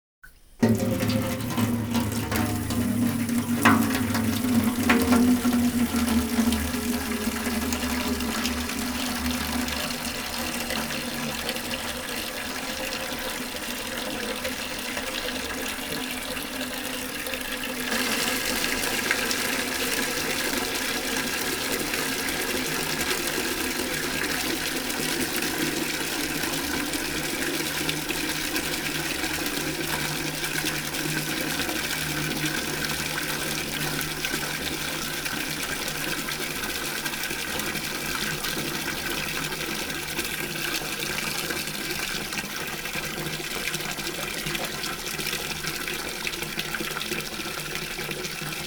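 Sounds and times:
water filling a bucket: 0.3 - 48.6.

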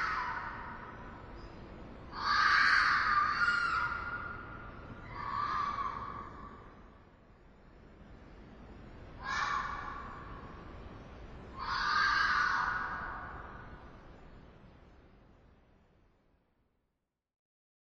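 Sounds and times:
fox: 0.0 - 1.3, 2.1 - 6.8, 9.2 - 10.7, 11.5 - 13.8.

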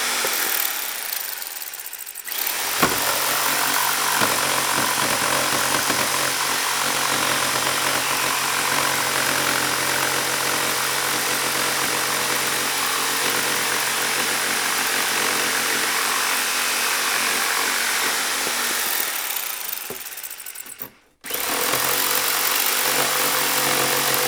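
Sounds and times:
rotary hammer drilling: 0.0 - 24.2.

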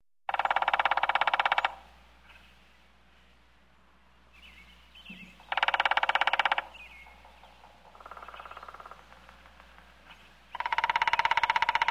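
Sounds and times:
woodpecker drumming: 0.3 - 2.4, 5.1 - 11.8.

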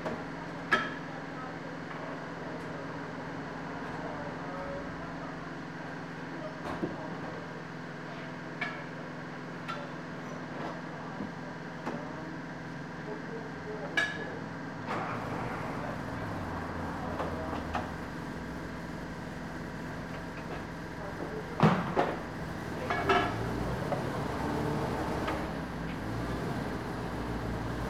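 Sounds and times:
auto repair shop noise during car service: 0.0 - 27.8.

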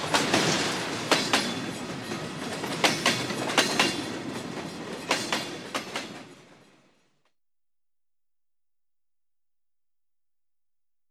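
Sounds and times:
train passing at a level crossing: 0.0 - 7.0.

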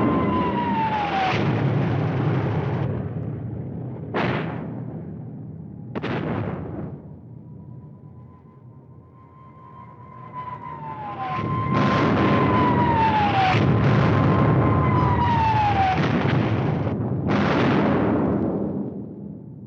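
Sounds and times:
whistling falling bombs: 0.0 - 3.0, 5.8 - 18.4
bomb explosions: 0.0 - 7.8, 10.9 - 19.6.

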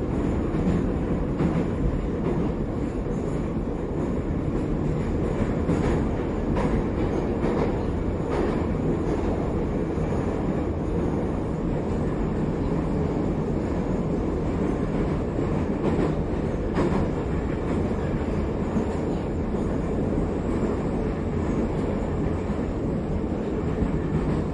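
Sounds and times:
metro train in Moscow: 0.0 - 24.5.

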